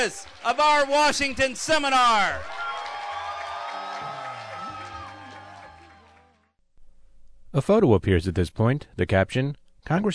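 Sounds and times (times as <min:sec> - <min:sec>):
speech: 0:00.0 - 0:02.6, 0:07.6 - 0:10.1
large crowd cheering and whooping: 0:00.0 - 0:06.6.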